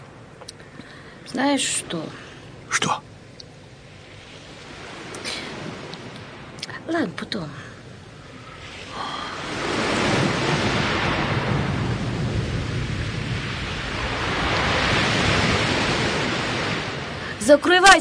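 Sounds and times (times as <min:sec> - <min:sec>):
speech: 0:01.3 - 0:03.1, 0:06.9 - 0:07.6, 0:17.5 - 0:17.9
strong wind roaring: 0:04.0 - 0:17.9.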